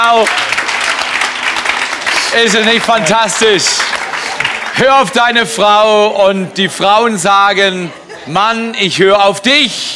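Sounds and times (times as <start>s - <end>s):
men in audience clapping: 0.0s - 5.4s
speech: 0.1s - 0.6s, 2.3s - 4.0s, 4.8s - 9.9s
laughter: 7.6s - 8.7s.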